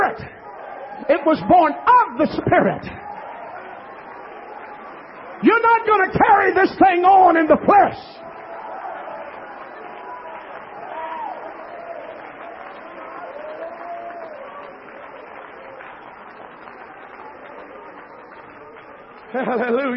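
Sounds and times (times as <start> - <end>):
church audience shouting together: 0.0 - 15.8
speech: 0.1 - 0.4, 1.0 - 3.0, 5.4 - 8.2, 19.3 - 19.9
laughter: 19.2 - 19.9.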